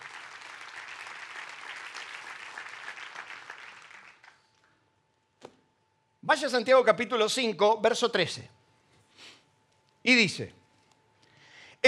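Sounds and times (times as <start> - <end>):
audience applause: 0.0 - 4.4
speech: 6.3 - 8.6, 10.0 - 10.6.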